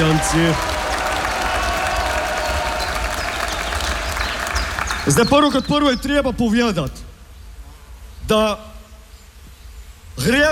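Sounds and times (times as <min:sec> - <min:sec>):
faint cheering: 0:00.0 - 0:05.6
crowd applauding: 0:00.0 - 0:05.8
speech: 0:00.2 - 0:00.8, 0:05.0 - 0:07.0, 0:08.3 - 0:08.7, 0:10.2 - 0:10.5.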